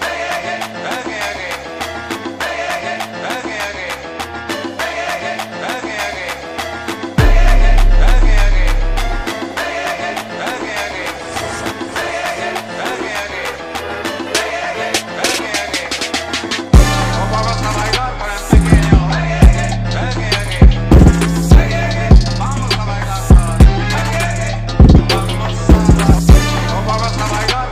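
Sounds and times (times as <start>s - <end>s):
trap beat mix: 7.2s - 27.6s.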